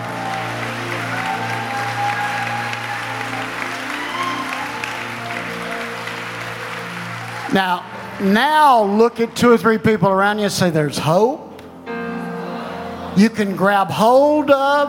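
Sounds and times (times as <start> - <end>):
audience clapping hands: 0.0 - 10.2
speech: 7.5 - 11.4, 13.2 - 14.8.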